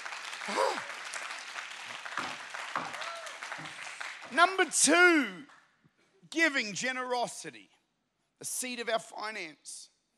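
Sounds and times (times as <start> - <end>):
crowd clapping: 0.0 - 5.7
speech: 0.5 - 0.9, 4.3 - 5.6, 6.3 - 7.8, 8.4 - 9.9.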